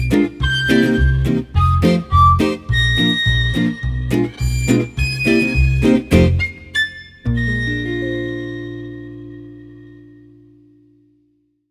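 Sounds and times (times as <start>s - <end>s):
French guitar and violin jazz: 0.0s - 11.0s.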